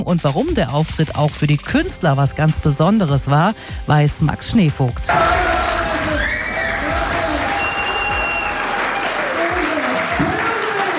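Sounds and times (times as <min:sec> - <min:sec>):
speech: 0:00.1 - 0:05.5
audience of inmates applauding at a comedy show in Hagen prison: 0:05.1 - 0:10.9.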